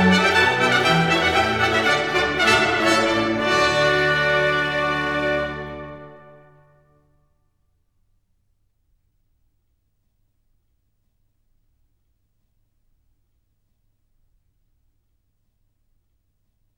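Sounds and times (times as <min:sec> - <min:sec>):
baroque dance piece: 0:00.0 - 0:07.0.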